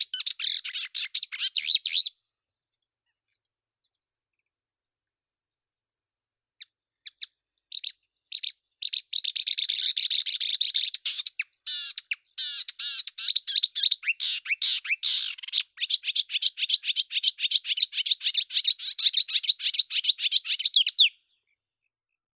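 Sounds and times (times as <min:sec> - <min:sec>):
marsh warbler Acrocephalus palustris: 0:00.0 - 0:02.2, 0:07.1 - 0:21.2.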